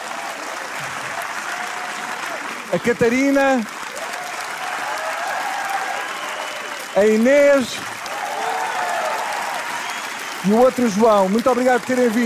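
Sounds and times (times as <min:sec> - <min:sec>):
audience applause: 0:00.0 - 0:12.2
speech: 0:02.7 - 0:03.7, 0:07.0 - 0:08.0, 0:10.4 - 0:12.2.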